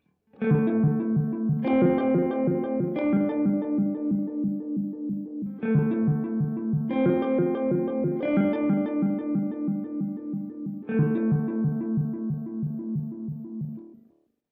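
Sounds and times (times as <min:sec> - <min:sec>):
Beetronics Seabee guitar effect pedal: 0:00.4 - 0:14.0.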